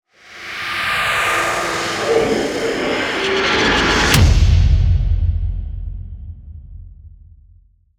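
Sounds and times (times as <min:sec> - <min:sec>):
rising tension build: 0:00.3 - 0:04.6.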